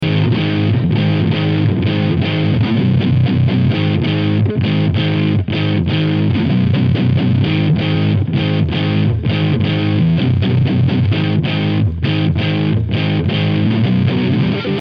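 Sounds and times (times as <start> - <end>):
neon guitar: 0.0 - 14.7.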